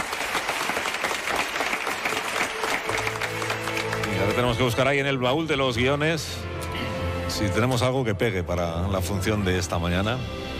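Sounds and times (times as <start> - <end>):
audience applause: 0.0 - 4.8
speech: 4.4 - 6.5, 7.4 - 10.4.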